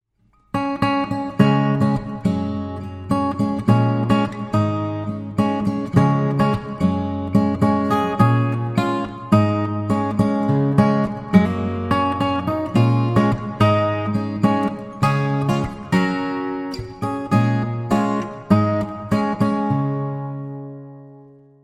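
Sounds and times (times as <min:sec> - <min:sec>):
instrumental wedding guitar playing: 0:00.3 - 0:21.6.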